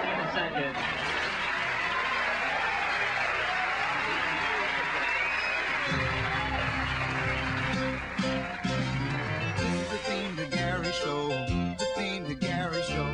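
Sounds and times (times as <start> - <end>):
noisy crowd-like wash: 0.0 - 10.6
opening theme song music with voice-like melodic lines: 5.8 - 13.1.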